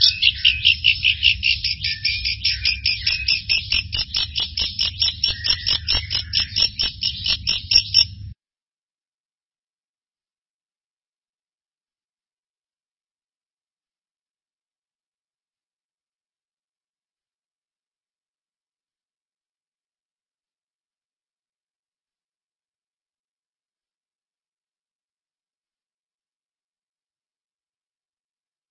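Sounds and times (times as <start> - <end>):
bird singing: 0.0 - 8.4.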